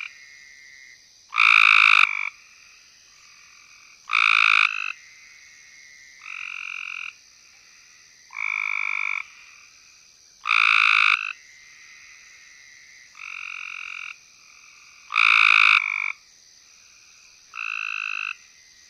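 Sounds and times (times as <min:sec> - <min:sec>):
Cope's gray treefrog Hyla chrysoscelis trilling: 0:00.0 - 0:09.7, 0:10.4 - 0:16.2, 0:16.8 - 0:18.6.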